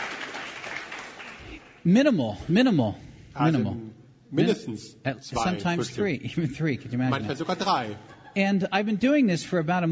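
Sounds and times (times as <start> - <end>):
applause: 0.0 - 1.8
speech: 1.8 - 9.9
laughter: 7.2 - 8.5.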